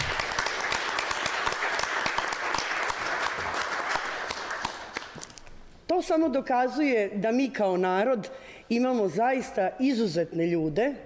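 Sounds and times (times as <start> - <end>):
audience applause at a book presentation in Banja Luka: 0.0 - 5.2
speech: 6.1 - 11.0.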